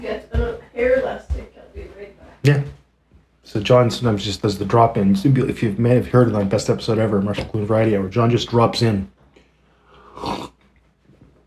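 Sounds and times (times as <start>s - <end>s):
speech: 2.4s - 2.7s, 3.5s - 9.2s
wet noisy slurp: 9.9s - 10.7s.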